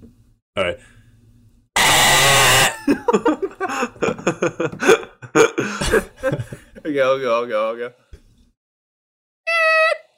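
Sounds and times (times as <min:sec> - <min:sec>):
speech: 0:00.6 - 0:01.0, 0:07.0 - 0:08.1
person imitating wrong-answer buzzer: 0:01.8 - 0:02.8
person laughing: 0:02.7 - 0:06.7.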